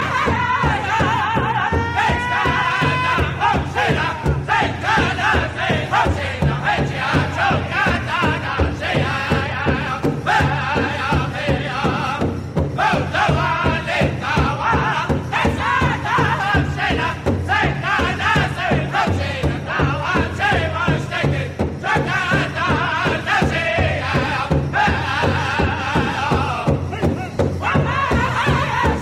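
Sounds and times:
Northern singing: 0.0 - 29.0.

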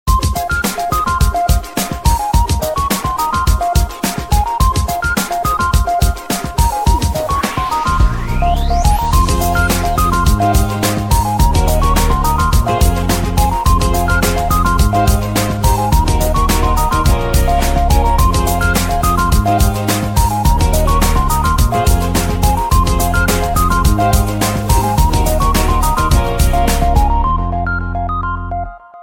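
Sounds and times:
music beat: 0.1 - 27.6.

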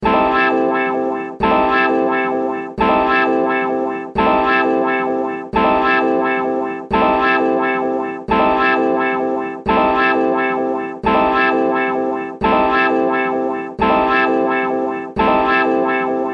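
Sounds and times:
mellow strumming: 0.0 - 16.3.

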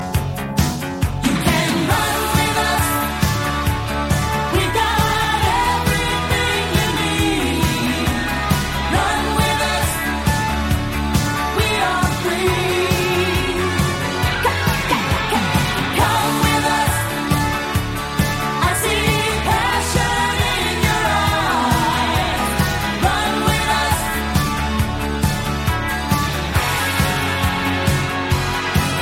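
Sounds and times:
theme music: 0.0 - 29.0.

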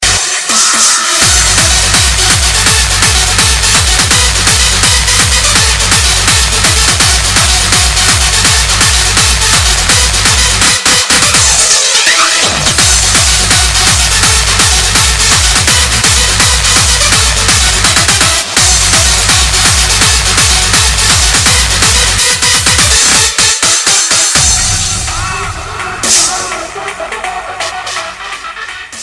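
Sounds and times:
hard dance music: 0.0 - 29.0.

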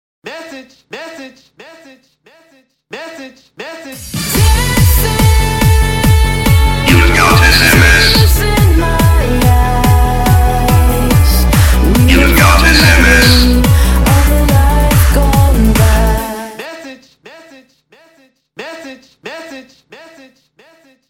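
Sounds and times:
dance music: 3.9 - 16.6.

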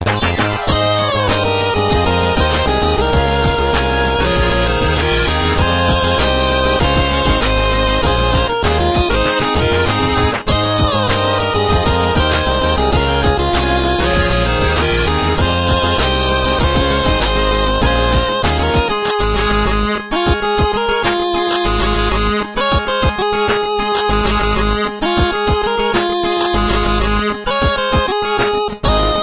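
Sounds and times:
8-bit music: 0.0 - 29.2.

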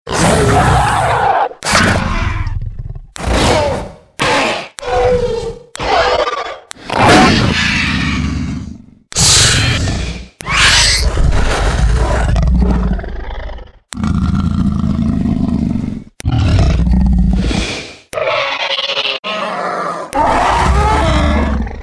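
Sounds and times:
velociraptor: 0.1 - 21.8.

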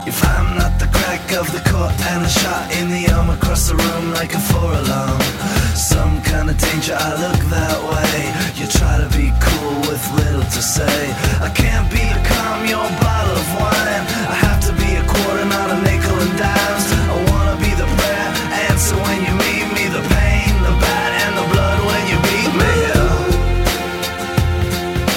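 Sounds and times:
custom beat: 0.0 - 25.1.

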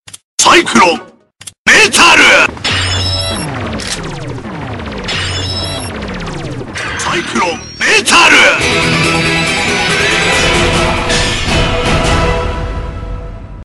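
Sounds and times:
metal music: 2.1 - 12.9.

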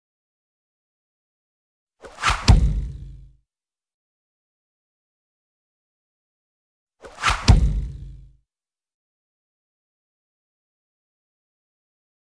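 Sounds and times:
knife throw: 2.0 - 3.4, 7.0 - 8.4.

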